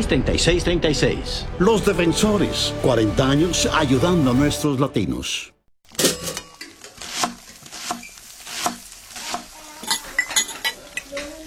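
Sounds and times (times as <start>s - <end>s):
speech: 0.0s - 5.6s
cutlery and dishes clinking in a kitchen: 5.9s - 8.1s, 9.8s - 11.4s.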